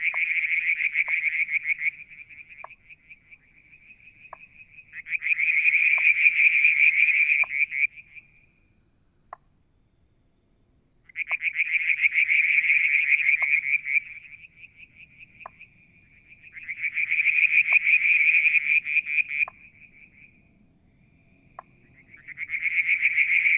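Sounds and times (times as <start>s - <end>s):
frogs trilling: 0.0s - 8.6s, 11.1s - 23.5s.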